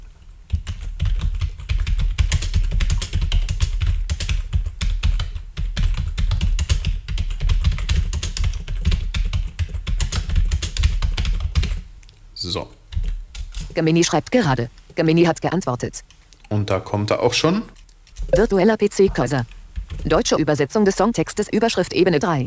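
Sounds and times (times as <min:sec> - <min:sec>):
rapid typing on a computer keyboard entering a prompt: 0:00.5 - 0:11.8
speech: 0:13.8 - 0:22.4.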